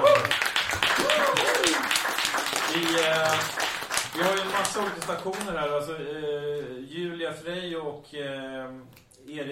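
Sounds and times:
audience applause: 0.0s - 5.6s
speech: 4.2s - 9.5s.

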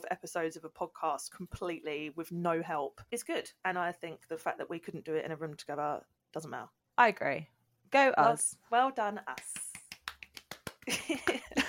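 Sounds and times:
speech: 0.1s - 9.6s, 10.9s - 11.5s
people clapping: 9.3s - 11.6s.

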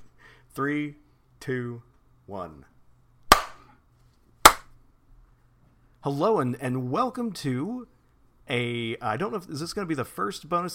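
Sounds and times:
speech: 0.6s - 2.7s, 6.0s - 7.9s, 8.5s - 10.7s
hand claps: 3.3s - 3.6s, 4.5s - 4.7s.

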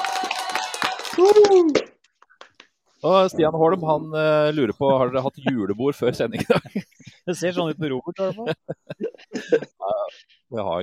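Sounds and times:
person whooping: 0.0s - 1.9s
sparse applause: 0.0s - 2.0s
speech: 1.2s - 1.9s, 3.0s - 10.8s
laughter: 4.6s - 10.2s.

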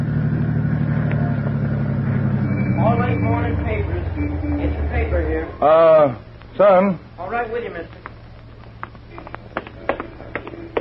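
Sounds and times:
faint higher whine: 0.0s - 7.7s
car engine idling: 0.0s - 10.7s
speech: 3.2s - 8.1s.

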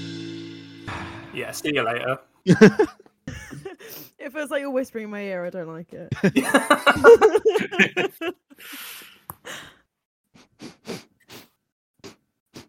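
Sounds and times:
speech: 1.4s - 3.0s, 4.2s - 9.7s
laughter: 2.5s - 3.9s, 6.1s - 8.6s
sniff against the microphone: 10.4s - 12.6s.

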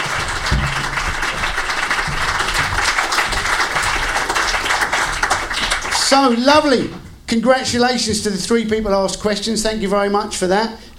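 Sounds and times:
audience applause: 0.0s - 6.8s
speech: 6.1s - 10.9s.

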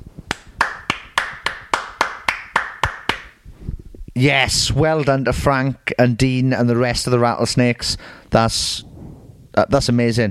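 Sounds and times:
hand clapping: 0.3s - 3.4s
speech: 4.2s - 8.9s, 9.6s - 10.2s.

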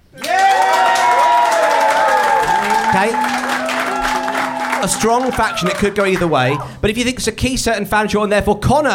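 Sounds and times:
live audience applause to cast a vote: 0.2s - 6.7s
speech: 3.0s - 3.4s, 4.8s - 8.9s.

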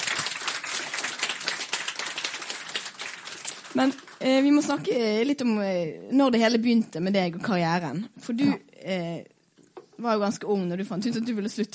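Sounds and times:
audience applause: 0.0s - 4.2s
speech: 3.8s - 9.4s, 10.0s - 11.7s.

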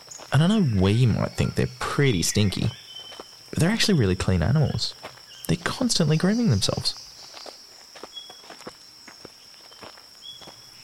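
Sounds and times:
insect buzz: 0.0s - 10.8s
speech: 0.3s - 2.8s, 3.5s - 7.0s
footsteps through dry brush: 2.7s - 3.6s, 7.0s - 10.8s.

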